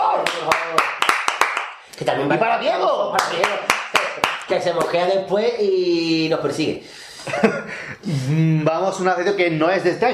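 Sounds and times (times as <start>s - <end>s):
audience clapping: 0.0s - 1.9s, 3.1s - 5.1s
speech: 2.0s - 3.8s, 4.5s - 10.1s.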